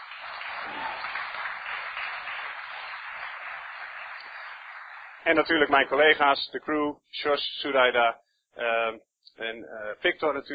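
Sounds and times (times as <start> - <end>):
audience applause: 0.0 - 6.1
speech: 5.2 - 10.5.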